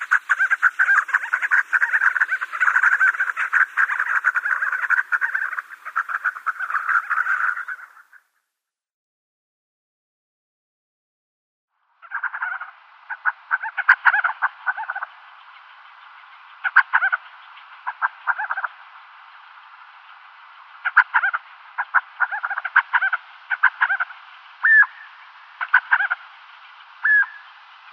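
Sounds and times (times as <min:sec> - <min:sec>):
crowned sandgrouse gurgling call: 0:00.0 - 0:08.3, 0:12.0 - 0:15.1, 0:16.6 - 0:17.2, 0:17.8 - 0:18.7, 0:20.8 - 0:26.2, 0:27.0 - 0:27.5.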